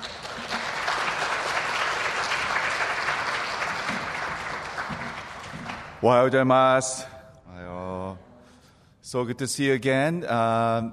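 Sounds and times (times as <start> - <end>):
audience applause welcoming a speaker: 0.0 - 6.0
speech: 6.0 - 7.1, 9.1 - 10.9.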